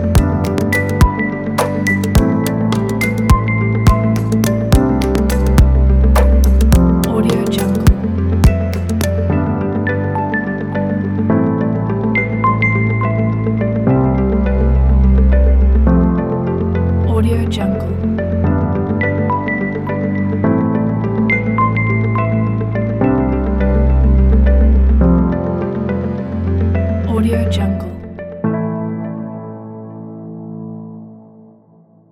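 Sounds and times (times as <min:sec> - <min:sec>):
ambient documentary music: 0:00.0 - 0:32.1.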